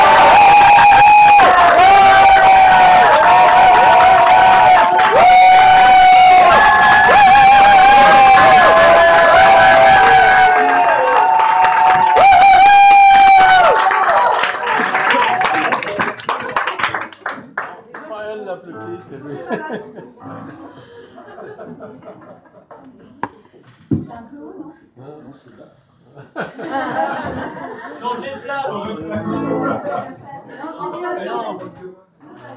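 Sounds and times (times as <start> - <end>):
audience cheering: 0.0 - 16.0.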